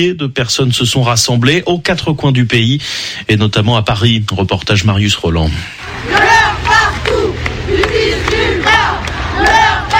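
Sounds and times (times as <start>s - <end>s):
speech: 0.0s - 8.0s
large crowd of protesters chanting slogans: 5.8s - 9.9s.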